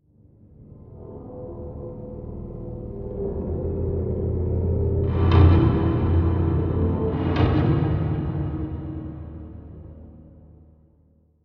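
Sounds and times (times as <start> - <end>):
ambient mood music: 0.3 - 11.1.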